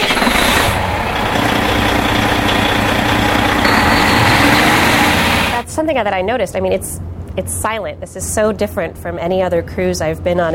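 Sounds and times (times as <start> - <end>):
diesel generator kicking on and running: 0.0 - 5.7
whistling tone: 3.6 - 5.5
thin high whine: 3.6 - 6.0
speech: 6.0 - 10.5.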